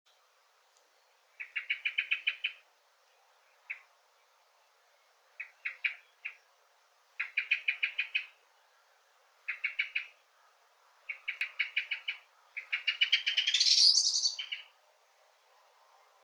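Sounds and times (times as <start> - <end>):
common blackbird chattering calls: 1.4 - 2.6, 7.2 - 8.4, 9.5 - 10.2, 11.1 - 14.7.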